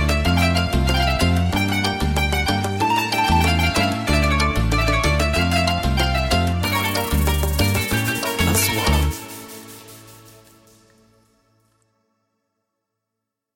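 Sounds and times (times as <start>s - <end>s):
music chords: 0.1s - 11.8s.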